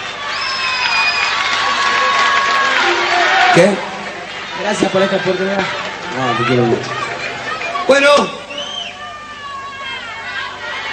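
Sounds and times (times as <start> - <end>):
audience applause: 0.0 - 8.3
speech: 3.6 - 3.9, 4.6 - 7.0.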